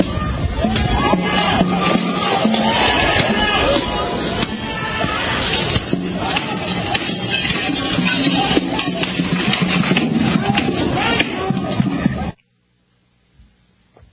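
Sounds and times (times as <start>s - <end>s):
drums banging in a riot: 0.0s - 12.4s
windows smashing in a riot: 1.4s - 11.5s.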